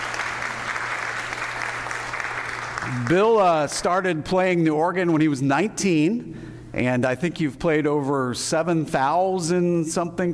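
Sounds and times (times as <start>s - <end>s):
audience applause: 0.0s - 3.4s
speech: 2.8s - 10.3s.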